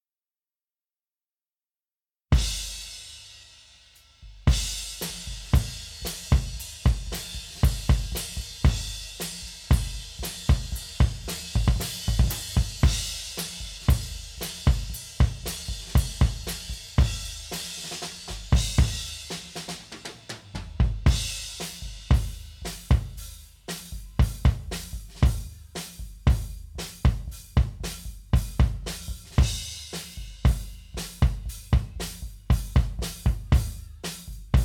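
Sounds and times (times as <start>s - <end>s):
drums: 2.3s - 34.6s.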